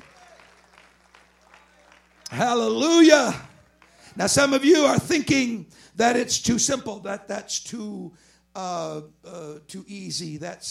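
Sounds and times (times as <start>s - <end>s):
audience clapping hands: 0.0s - 4.6s
speech: 2.3s - 3.5s, 4.2s - 10.6s.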